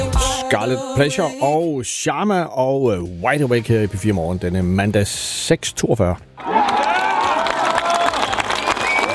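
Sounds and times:
speech: 0.5s - 6.6s
golf tournament crowd cheering: 6.4s - 9.1s
scattered clapping: 6.5s - 9.1s
whistles: 8.1s - 9.1s.

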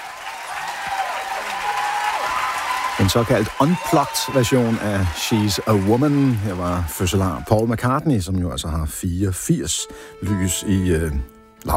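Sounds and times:
audience applause: 0.0s - 8.0s
speech: 3.0s - 11.7s.

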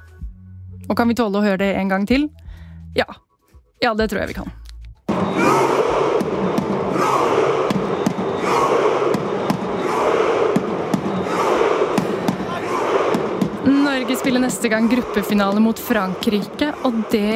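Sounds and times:
speech: 0.8s - 3.2s, 3.8s - 4.6s, 14.3s - 17.3s
sharp drum hits: 5.1s - 14.7s
stadium fans chanting: 5.1s - 17.3s.

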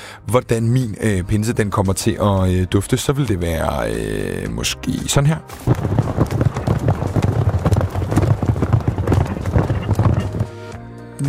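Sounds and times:
speech: 0.3s - 6.3s
horse hooves galloping: 5.5s - 10.8s.

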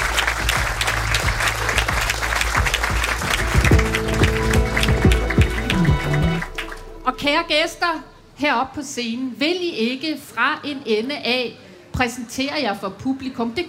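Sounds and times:
audience applause: 0.0s - 7.2s
low tonal notes: 3.2s - 8.7s
speech: 7.2s - 13.6s.

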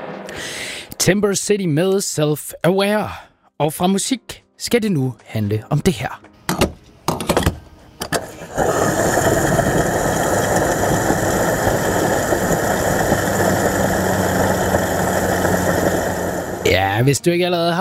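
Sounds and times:
speech: 1.0s - 6.3s, 17.0s - 17.7s
whirring hum of fuel flowing into a car: 8.2s - 16.7s.

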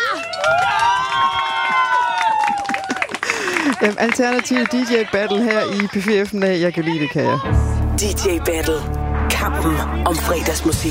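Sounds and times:
audience applause: 0.0s - 7.2s
speech: 3.8s - 10.8s.

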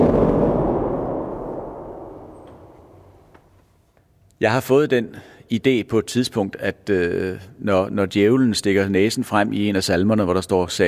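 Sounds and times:
organ thunder pedal rumble: 0.0s - 3.3s
speech: 4.4s - 10.8s.

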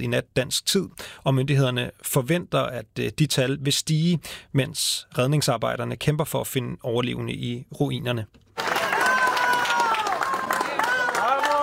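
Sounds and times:
speech: 0.0s - 8.4s
crowd clapping as rescuers bring out survivor in Caracas: 8.6s - 11.6s.

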